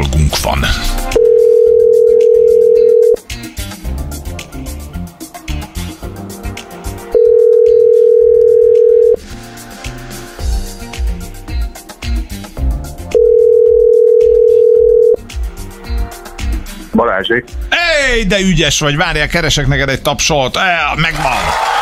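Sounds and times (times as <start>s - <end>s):
music: 0.0s - 21.7s
speech: 0.4s - 1.2s, 17.2s - 21.7s
telephone calling tone while calling a listener: 1.2s - 3.2s, 7.2s - 9.2s, 13.2s - 15.2s.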